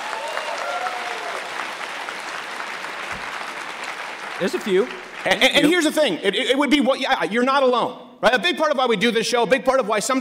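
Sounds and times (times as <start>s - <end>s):
crowd clapping: 0.0s - 6.2s
speech: 4.4s - 10.1s.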